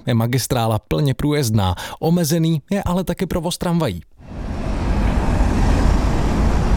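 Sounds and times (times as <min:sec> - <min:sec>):
speech: 0:00.0 - 0:04.4
cars driving slowly across a city bridge under repair: 0:04.2 - 0:06.7.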